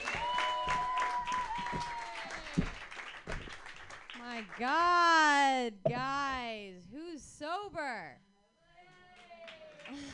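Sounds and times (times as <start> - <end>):
audience clapping: 0.0 - 4.8, 9.1 - 10.1
speech: 4.4 - 8.3.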